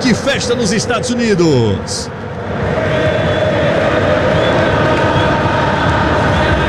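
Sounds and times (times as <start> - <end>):
speech: 0.1 - 3.1
football fans chanting in stadium: 2.2 - 6.6.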